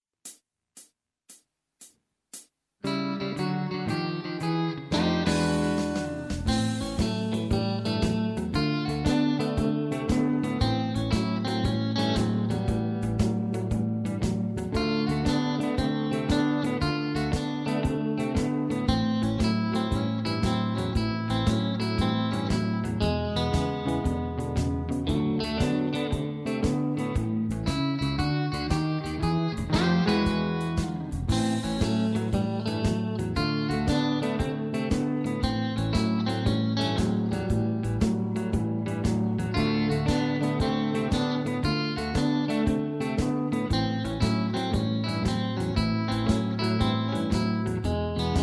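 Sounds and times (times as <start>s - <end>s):
blues music: 0.3s - 48.4s.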